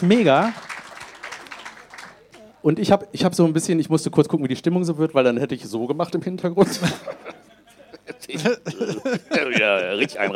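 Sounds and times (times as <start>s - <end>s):
speech: 0.0s - 0.6s, 2.6s - 7.5s, 8.1s - 10.3s
audience applause: 0.0s - 2.5s
laughter: 6.6s - 10.3s.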